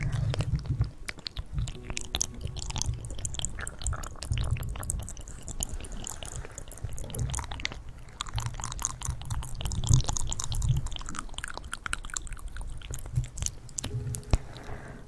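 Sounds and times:
mouth sounds with crisp clicking and chewing-like crunches: 0.0s - 14.9s.

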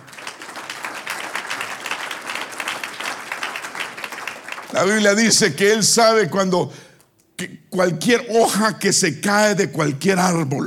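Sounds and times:
audience applause: 0.0s - 5.2s
speech: 4.7s - 6.9s, 7.8s - 10.6s.

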